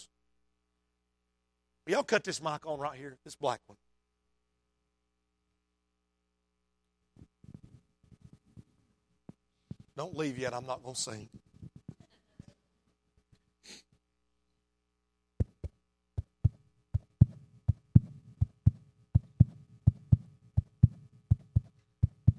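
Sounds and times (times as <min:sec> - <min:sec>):
speech: 0:01.9 - 0:03.9, 0:10.0 - 0:11.4
fetal heartbeat from an ultrasound monitor: 0:15.4 - 0:22.3.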